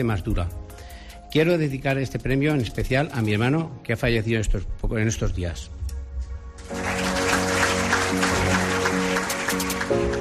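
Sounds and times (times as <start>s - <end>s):
speech: 0.0s - 0.6s, 1.3s - 5.8s
audience applause ovation: 6.6s - 10.1s.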